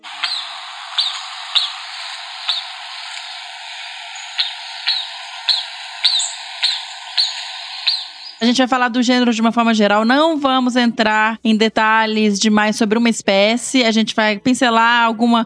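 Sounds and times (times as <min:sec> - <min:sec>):
constant hiss: 0:00.0 - 0:09.4
Aotus night monkey calling with high-pitched squeaky chirps: 0:00.2 - 0:02.8, 0:04.1 - 0:08.4
speech: 0:08.4 - 0:15.4.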